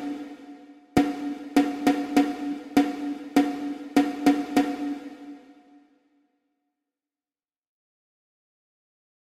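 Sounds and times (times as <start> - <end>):
rhythmic dictation exercise for ear training: 0.0 - 5.5.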